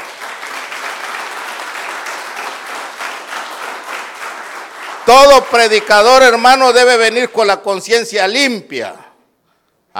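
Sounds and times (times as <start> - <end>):
audience clapping: 0.0 - 7.3
speech: 5.1 - 9.0.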